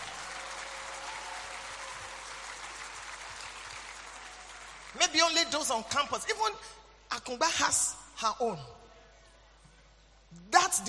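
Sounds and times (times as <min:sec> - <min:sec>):
audience clapping: 0:00.0 - 0:05.0
speech: 0:04.9 - 0:08.8.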